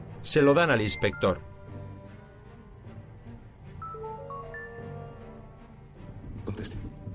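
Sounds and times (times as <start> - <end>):
speech: 0.2 - 1.5
mobile phone ringtone: 3.8 - 5.5.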